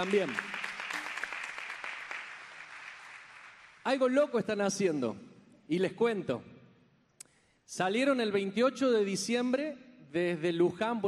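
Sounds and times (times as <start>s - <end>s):
speech: 0.0s - 0.6s, 3.9s - 6.5s, 7.7s - 11.0s
audience applause: 0.0s - 3.8s.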